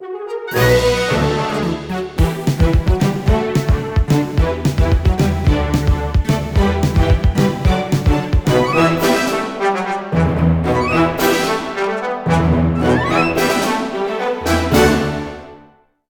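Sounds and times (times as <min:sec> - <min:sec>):
legendary music: 0:00.0 - 0:15.8.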